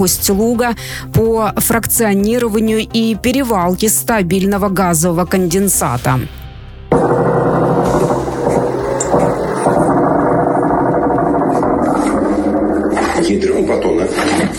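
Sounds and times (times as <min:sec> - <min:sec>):
speech: 0:00.0 - 0:07.0
attack drones buzzing overhead: 0:06.9 - 0:13.9.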